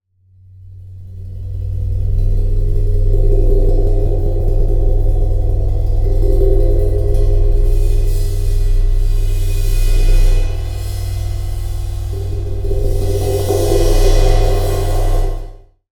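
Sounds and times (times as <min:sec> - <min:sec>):
cymbal: 0:01.3 - 0:15.7.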